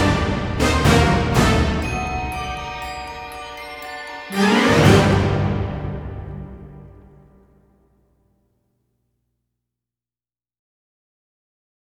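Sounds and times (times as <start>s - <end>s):
Christmas carol instrumental without choir: 0.0s - 7.6s.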